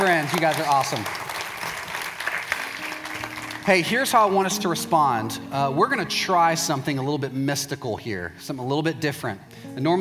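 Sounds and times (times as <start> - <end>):
crowd applauding: 0.0 - 4.6
speech: 0.1 - 1.3, 3.6 - 9.9.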